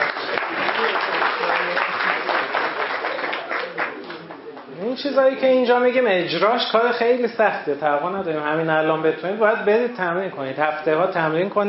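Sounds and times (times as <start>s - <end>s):
audience applause: 0.0s - 4.6s
speech: 5.0s - 11.6s.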